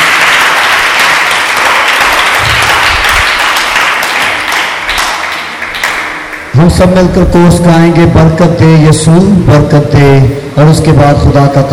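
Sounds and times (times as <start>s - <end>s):
loud applause from a large crowd: 0.0s - 6.5s
speech: 6.6s - 11.7s.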